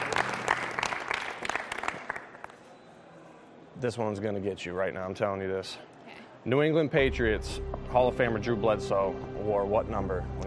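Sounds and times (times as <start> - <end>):
applause from a small audience: 0.0 - 2.5
speech: 3.8 - 10.4.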